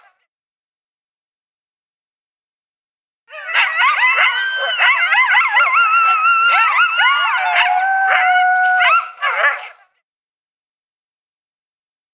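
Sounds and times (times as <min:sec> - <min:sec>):
coyote howling and yipping: 0:03.3 - 0:09.8.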